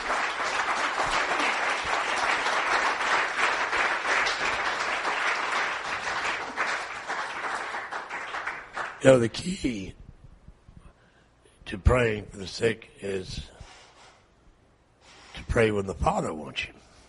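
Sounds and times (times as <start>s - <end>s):
crowd applauding: 0.0s - 9.3s
speech: 9.0s - 10.0s, 11.7s - 13.5s, 15.6s - 16.9s.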